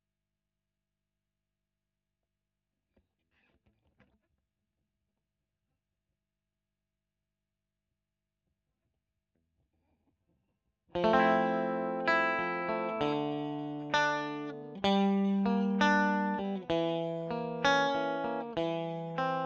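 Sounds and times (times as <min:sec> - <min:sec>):
electric guitar recorded with a Royer microphone: 0:11.0 - 0:19.4.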